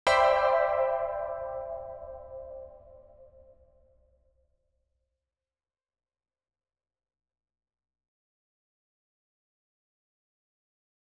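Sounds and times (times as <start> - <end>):
ambient music: 0.1 - 3.5.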